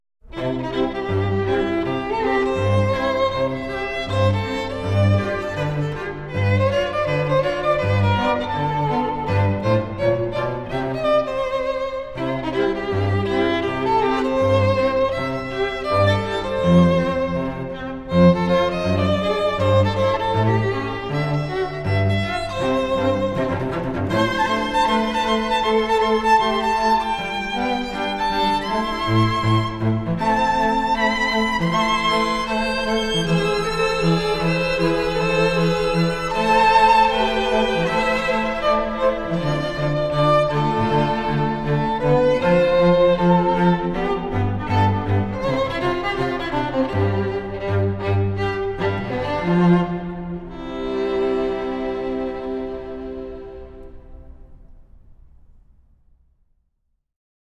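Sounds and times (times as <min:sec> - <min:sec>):
string quartet: 0:00.2 - 0:55.0.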